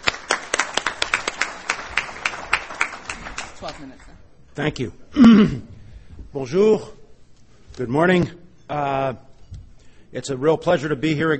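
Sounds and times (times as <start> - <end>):
audience applause: 0.0 - 4.1
speech: 3.6 - 5.7, 6.3 - 7.0, 7.8 - 9.3, 10.1 - 11.3.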